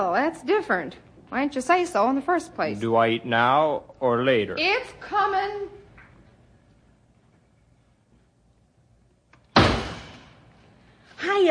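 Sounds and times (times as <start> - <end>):
speech: 0.0 - 5.8, 11.2 - 11.5
door banging shut: 9.5 - 10.5.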